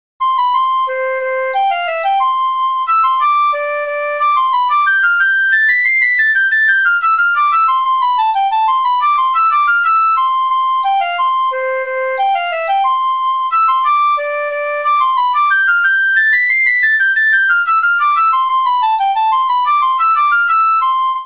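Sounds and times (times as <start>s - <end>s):
Android hornpipe ringtone melody: 0.2s - 21.2s.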